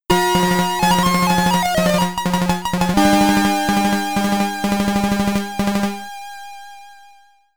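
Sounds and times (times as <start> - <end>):
Commodore 64 SID stereo game over jingle: 0.1 - 6.0.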